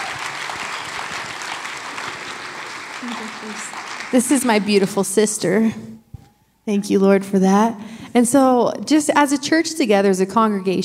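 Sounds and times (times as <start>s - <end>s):
audience applause: 0.0s - 5.2s
speech: 3.0s - 5.9s, 6.7s - 10.8s.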